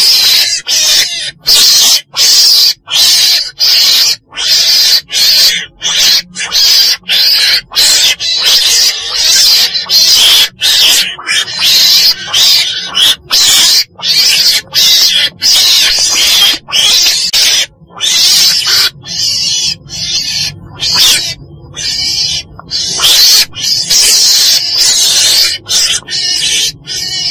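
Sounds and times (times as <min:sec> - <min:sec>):
weasel screeching: 0:00.0 - 0:27.2.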